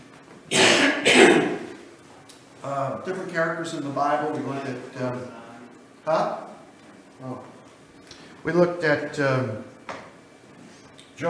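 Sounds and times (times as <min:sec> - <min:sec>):
preacher clearing his throat during a church sermon: 0:00.5 - 0:01.8
preacher coughing during a church sermon: 0:00.5 - 0:01.8
speech: 0:02.6 - 0:05.4, 0:06.0 - 0:06.5, 0:07.2 - 0:07.5, 0:08.4 - 0:09.7.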